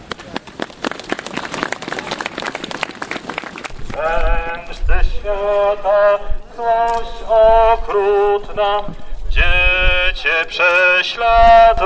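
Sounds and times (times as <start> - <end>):
applause: 0.0 - 4.1
speech: 5.2 - 11.8.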